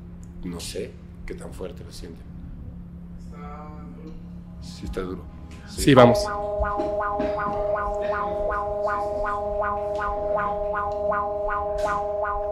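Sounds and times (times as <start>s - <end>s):
speech: 0.4s - 2.4s, 3.3s - 12.5s
seismic alert warning siren: 4.4s - 12.5s.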